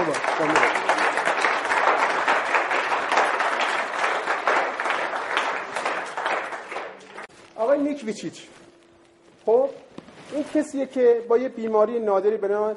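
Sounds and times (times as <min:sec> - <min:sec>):
audience applause: 0:00.0 - 0:07.3
speech: 0:00.1 - 0:00.7, 0:08.0 - 0:08.6, 0:09.5 - 0:09.8, 0:10.4 - 0:12.7.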